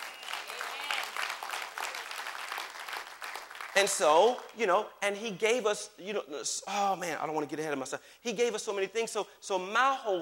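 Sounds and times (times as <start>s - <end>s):
audience applause: 0.0s - 3.9s
speech: 3.8s - 10.2s.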